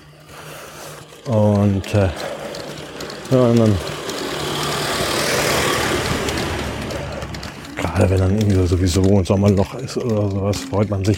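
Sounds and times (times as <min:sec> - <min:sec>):
speech: 0:01.2 - 0:02.4, 0:03.3 - 0:03.9, 0:08.0 - 0:11.1
Volkswagen van driving past: 0:01.2 - 0:08.7.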